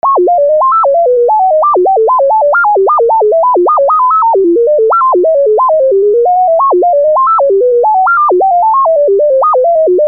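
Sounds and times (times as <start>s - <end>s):
music: 0.0s - 10.0s.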